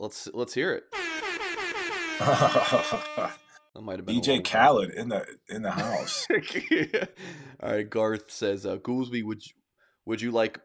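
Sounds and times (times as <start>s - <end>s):
speech: 0.0s - 1.2s, 2.2s - 10.6s
air horn alarm sound effect: 0.9s - 3.6s
laughter: 2.2s - 3.4s, 5.5s - 7.4s.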